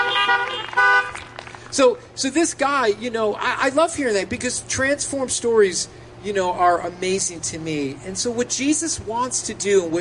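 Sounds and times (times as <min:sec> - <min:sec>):
car horns honking: 0:00.0 - 0:01.4
speech: 0:01.8 - 0:09.9.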